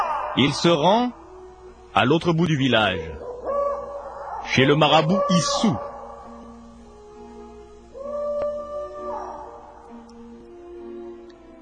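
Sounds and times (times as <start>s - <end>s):
owl hooting at night: 0.0s - 1.5s, 2.8s - 10.1s
speech: 0.4s - 1.2s, 2.0s - 3.2s, 4.4s - 5.9s.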